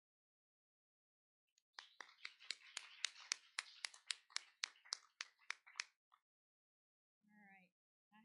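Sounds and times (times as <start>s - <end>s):
steady rhythmic audience clapping: 1.7s - 6.0s.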